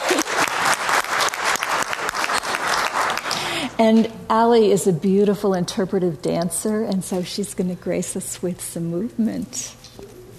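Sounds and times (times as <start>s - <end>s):
audience applause: 0.0s - 3.8s
speech: 3.8s - 9.8s.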